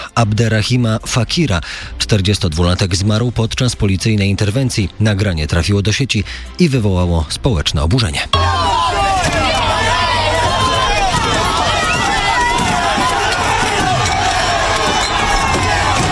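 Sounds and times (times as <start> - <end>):
speech: 0.2 - 9.6
rioters shouting in a street riot clash with police: 8.4 - 16.1
rushing footsteps: 9.3 - 16.1.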